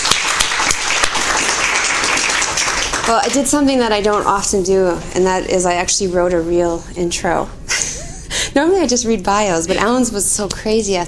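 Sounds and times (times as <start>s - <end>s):
audience applause at a conference: 0.0s - 3.3s
speech: 3.1s - 7.7s, 8.6s - 11.0s.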